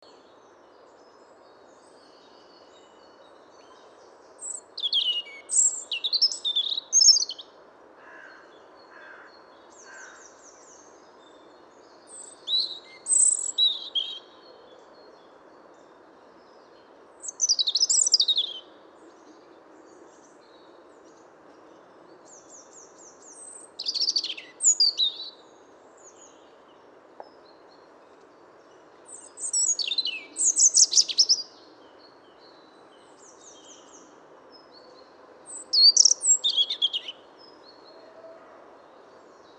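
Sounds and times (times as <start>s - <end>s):
faint hiss: 0.0s - 39.5s
European robin singing: 1.8s - 7.5s, 8.8s - 15.2s, 16.5s - 18.8s, 22.3s - 27.9s, 28.6s - 38.0s.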